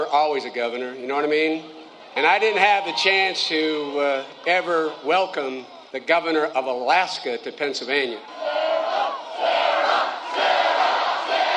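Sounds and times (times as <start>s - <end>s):
speech: 0.1s - 8.6s
crowd chanting for Alaska Governor Sarah Palin at a rally: 8.2s - 11.5s.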